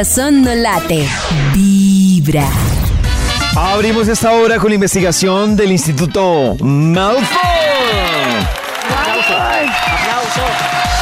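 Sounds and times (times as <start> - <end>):
speech: 0.0 - 2.8, 3.6 - 8.5
crowd clapping: 7.0 - 11.0
swooping whistle-like tones: 9.0 - 10.3.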